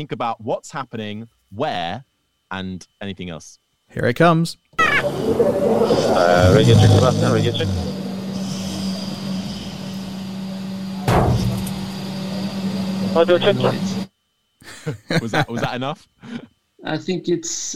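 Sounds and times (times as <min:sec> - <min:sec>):
speech: 0:00.0 - 0:07.9, 0:13.2 - 0:14.0, 0:14.6 - 0:17.7
laughter: 0:04.8 - 0:08.2, 0:14.6 - 0:16.4
car engine drone inside a moving car: 0:04.8 - 0:14.1
sharp thump: 0:11.0 - 0:11.8.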